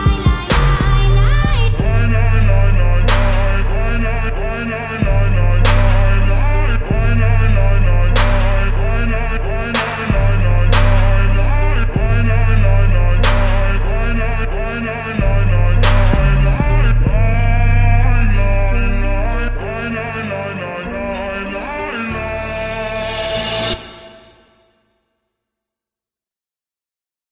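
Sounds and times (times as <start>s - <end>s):
atmospheric trap music: 0.0s - 24.4s.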